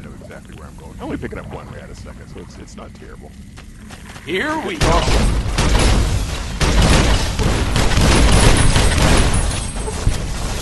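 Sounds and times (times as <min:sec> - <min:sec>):
speech: 0:00.3 - 0:07.5
gunfire in the Fallout video game in a large cavern: 0:04.8 - 0:10.4.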